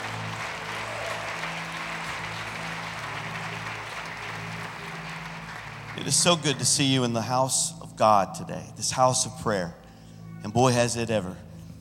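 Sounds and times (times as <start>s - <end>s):
audience clapping: 0.0s - 7.2s
speech: 6.0s - 9.8s, 10.4s - 11.5s.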